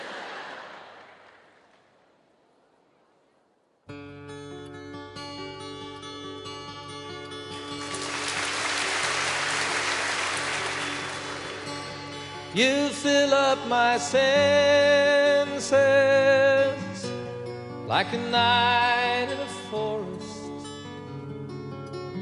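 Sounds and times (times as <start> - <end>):
audience clapping: 0.0 - 1.9, 7.7 - 12.4
instrumental music: 3.9 - 22.2
speech: 12.6 - 16.8, 17.9 - 20.0.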